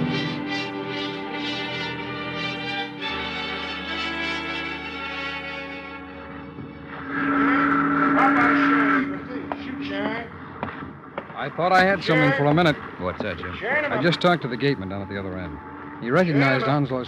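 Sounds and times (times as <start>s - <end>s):
ferry boat horn: 0.0s - 10.3s
ferry boat low rumble: 6.5s - 17.0s
quieter mechanical noise: 6.9s - 17.0s
speech: 11.4s - 17.0s.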